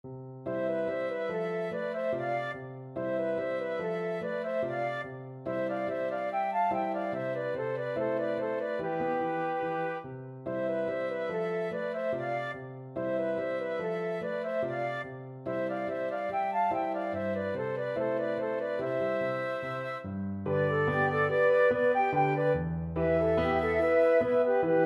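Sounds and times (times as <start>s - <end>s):
flutes playing opera music: 0.5s - 24.8s.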